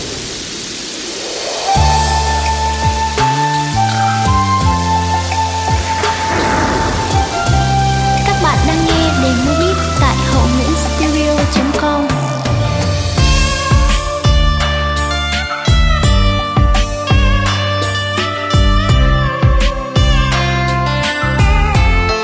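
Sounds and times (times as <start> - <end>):
music beat playback: 1.8 - 22.2.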